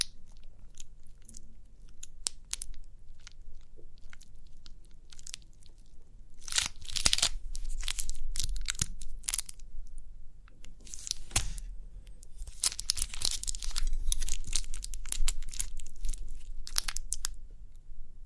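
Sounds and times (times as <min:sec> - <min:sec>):
crinkly pimple popping crackles: 0:00.0 - 0:10.0, 0:10.6 - 0:17.4
soft low rumble: 0:07.4 - 0:18.2.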